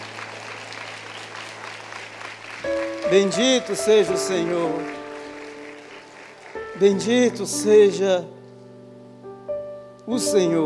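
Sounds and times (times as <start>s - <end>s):
audience applauding: 0.0s - 7.4s
speech: 2.6s - 5.0s, 6.8s - 8.4s, 10.1s - 10.6s.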